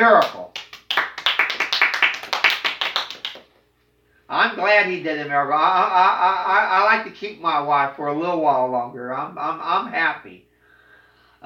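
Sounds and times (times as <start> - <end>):
speech: 0.0 - 0.4, 4.4 - 10.5
audience clapping: 0.2 - 3.5.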